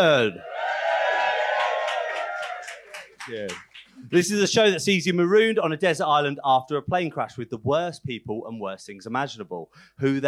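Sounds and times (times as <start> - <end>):
speech: 0.0 - 0.6, 3.3 - 10.2
live audience applause and cheering: 0.0 - 4.0.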